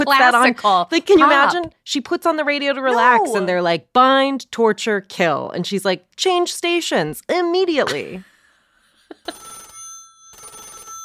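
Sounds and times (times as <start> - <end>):
speech: 0.0 - 8.3
landline telephone ringing: 9.2 - 11.0.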